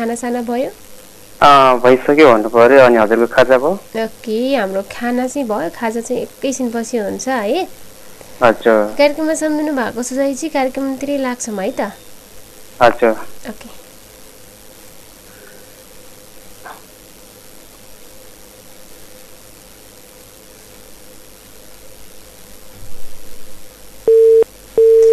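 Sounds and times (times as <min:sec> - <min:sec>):
speech: 0:00.0 - 0:12.1, 0:12.8 - 0:13.8
low hiss: 0:00.0 - 0:25.1
telephone busy tone beeps: 0:24.1 - 0:25.1.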